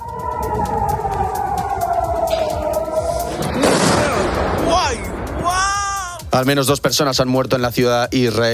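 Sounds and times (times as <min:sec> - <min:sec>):
wailing tone falling in pitch: 0:00.0 - 0:06.3
Iranian cluster-warhead missile blast in Tel Aviv: 0:03.3 - 0:05.7
speech: 0:06.4 - 0:08.5.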